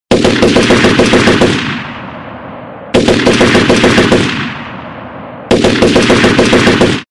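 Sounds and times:
gunshots: 0:00.1 - 0:07.0.

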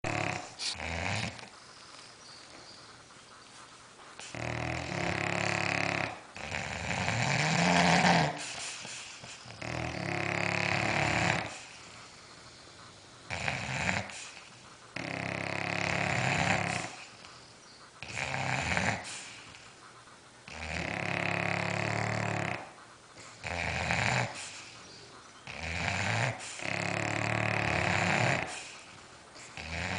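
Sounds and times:
dogs snoring: 0:00.0 - 0:29.9.

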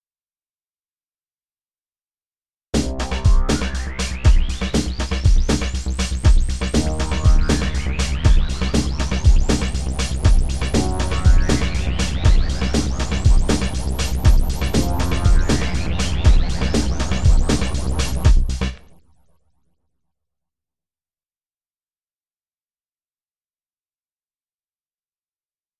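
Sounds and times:
dark bass: 0:02.8 - 0:19.1.

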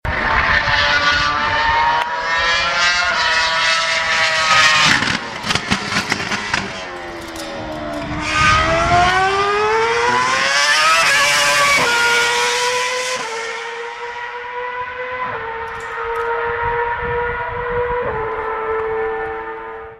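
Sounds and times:
Ferrari F1 car engine: 0:00.1 - 0:19.9.

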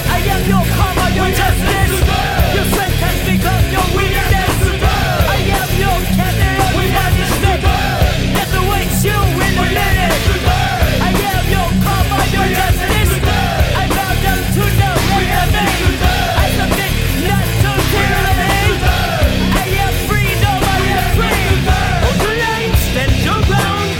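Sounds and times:
battle cry: 0:00.1 - 0:23.9.

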